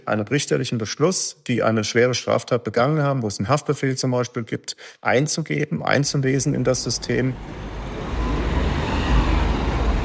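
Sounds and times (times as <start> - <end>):
speech: 0.0 - 7.8
busy junction traffic on Cologne's ring road at night: 6.4 - 10.0.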